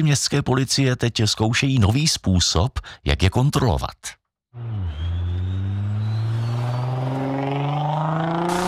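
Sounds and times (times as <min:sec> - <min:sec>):
speech: 0:00.0 - 0:05.0
car speeding past on a main road: 0:04.6 - 0:08.6.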